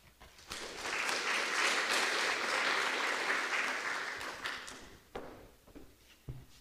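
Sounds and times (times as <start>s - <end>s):
audience applause welcoming a speaker at a law school event: 0.4s - 5.0s.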